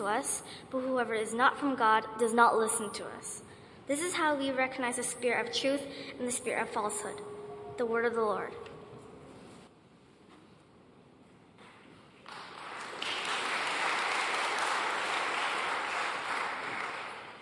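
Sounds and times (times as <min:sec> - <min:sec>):
speech: 0:00.0 - 0:08.7
audience applause: 0:12.3 - 0:17.4.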